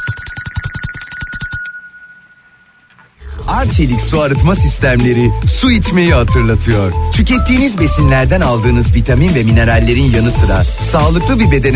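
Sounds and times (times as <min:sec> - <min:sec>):
bright electronic bell ringtone: 0:00.0 - 0:02.9
speech: 0:03.6 - 0:11.7.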